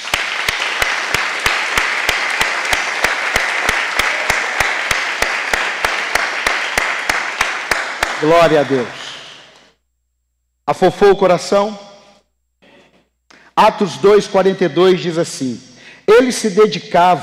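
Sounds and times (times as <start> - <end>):
audience applauding: 0.0 - 9.0
speech: 8.2 - 9.0, 10.7 - 11.9, 13.6 - 17.2.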